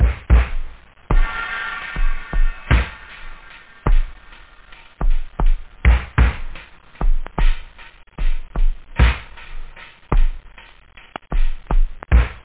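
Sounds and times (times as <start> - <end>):
funk music: 0.0 - 12.4.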